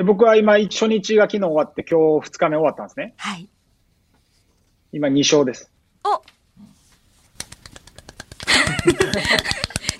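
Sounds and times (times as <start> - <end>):
speech: 0.0 - 3.6, 4.9 - 6.3
applause: 7.7 - 9.9
laughter: 8.4 - 9.9.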